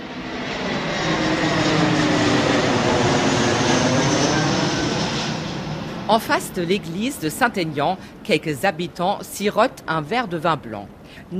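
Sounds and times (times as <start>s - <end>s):
airplane roar: 0.0s - 11.3s
faint rising engine tone: 0.1s - 6.2s
speech: 6.1s - 11.3s.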